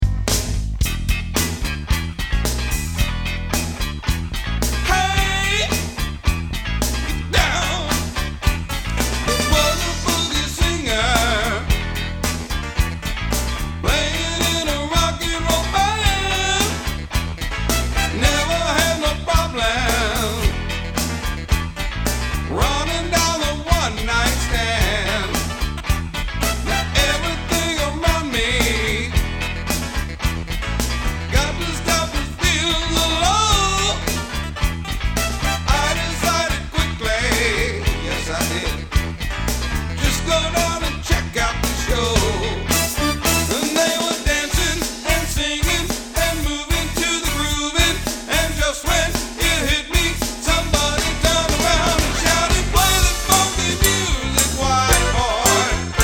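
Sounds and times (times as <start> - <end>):
funky music: 0.0 - 56.0.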